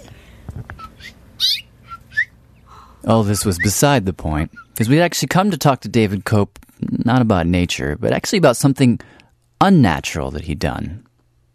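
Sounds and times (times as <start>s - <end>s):
mother bird at her nest chirping: 0.8s - 3.8s
speech: 3.1s - 11.1s.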